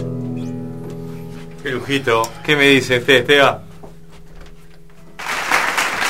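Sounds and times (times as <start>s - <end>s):
speech: 1.8s - 3.6s
crowd applauding: 5.2s - 6.0s.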